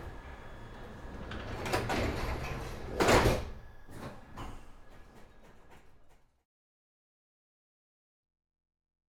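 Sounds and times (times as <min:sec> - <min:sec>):
London Underground train interior during a ride: 0:00.0 - 0:06.4.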